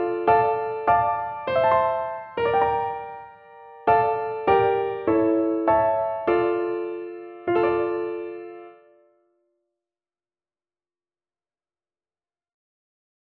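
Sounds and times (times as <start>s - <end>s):
lonely bar piano: 0.0s - 9.0s.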